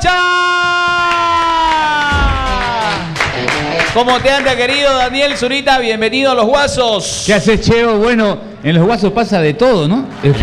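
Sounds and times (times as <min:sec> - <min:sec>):
studio audience cheering and whooping to welcome a guest: 0:00.8 - 0:03.9
speech: 0:04.0 - 0:10.4.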